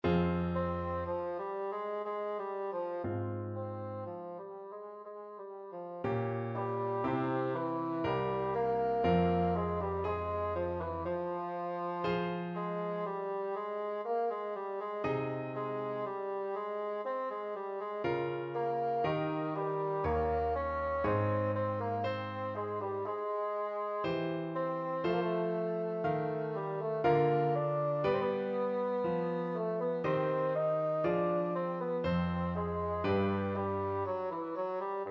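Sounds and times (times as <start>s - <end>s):
bassoon playing a baroque piece: 0.0s - 35.1s.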